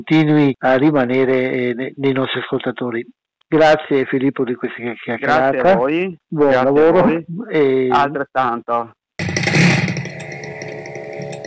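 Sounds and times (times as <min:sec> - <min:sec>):
speech: 0:00.0 - 0:09.0
pest control fogging machine two-stroke engine outside window: 0:09.2 - 0:11.4.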